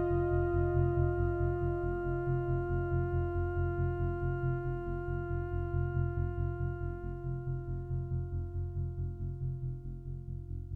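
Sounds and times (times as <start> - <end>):
slow music movement: 0.0 - 10.6.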